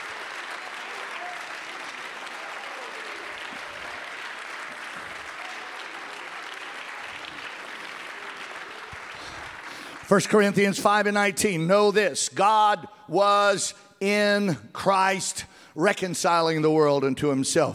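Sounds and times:
audience clapping: 0.0s - 11.0s
speech: 10.1s - 17.7s.

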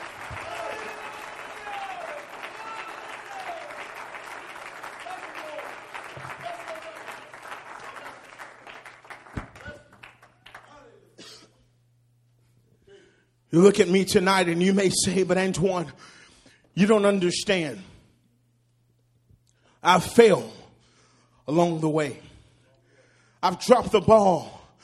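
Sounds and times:
audience clapping hands: 0.0s - 11.0s
speech: 13.5s - 16.2s, 16.8s - 17.9s, 19.8s - 20.6s, 21.5s - 22.3s, 23.4s - 24.6s.

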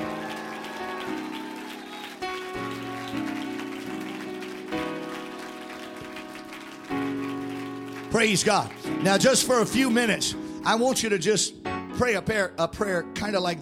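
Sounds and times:
audience clapping hands: 0.0s - 9.6s
speech: 8.2s - 13.6s.

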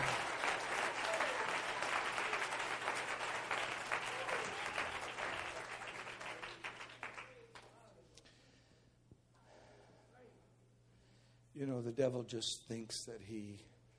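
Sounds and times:
audience clapping hands: 0.0s - 7.8s
speech: 11.8s - 13.7s.

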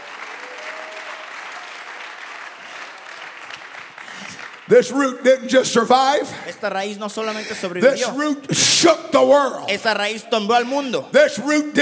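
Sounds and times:
audience clapping hands: 0.0s - 6.4s
speech: 4.7s - 11.8s.

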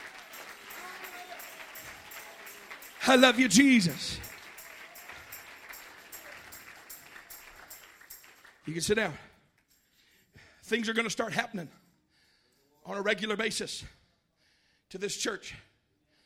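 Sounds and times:
audience clapping: 0.0s - 9.2s
speech: 3.1s - 4.3s, 8.7s - 9.3s, 10.7s - 11.8s, 12.9s - 14.0s, 14.9s - 15.7s.

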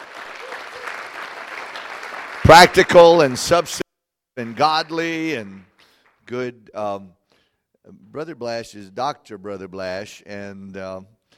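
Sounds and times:
audience applause for a guest speaker at a religious gathering: 0.0s - 3.8s
speech: 2.5s - 3.8s, 4.4s - 5.7s, 6.3s - 7.2s, 7.8s - 11.2s.

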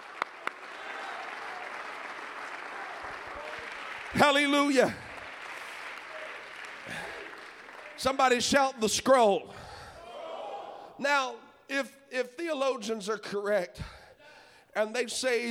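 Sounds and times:
audience applauding: 0.0s - 8.6s
speech: 4.1s - 5.0s, 8.0s - 9.6s, 11.0s - 13.9s, 14.8s - 15.4s.

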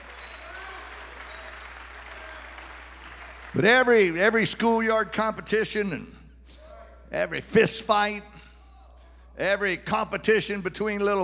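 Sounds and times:
audience clapping hands: 0.0s - 4.1s
speech: 3.5s - 6.2s, 7.1s - 8.4s, 9.4s - 11.2s.

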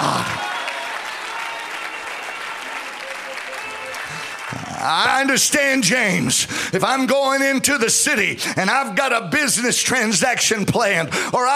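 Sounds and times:
audience clapping hands: 0.0s - 6.0s
speech: 4.8s - 11.5s.

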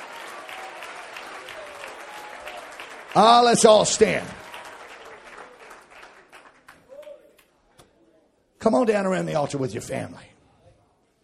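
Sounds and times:
audience clapping hands in praise: 0.0s - 7.6s
speech: 3.1s - 4.4s, 8.6s - 10.4s.

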